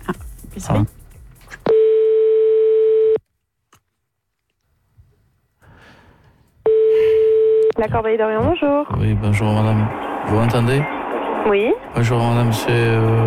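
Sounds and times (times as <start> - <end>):
speech: 0.6 - 1.0, 7.8 - 13.2
outgoing call telephone ringing tone: 1.7 - 3.2, 6.7 - 7.8.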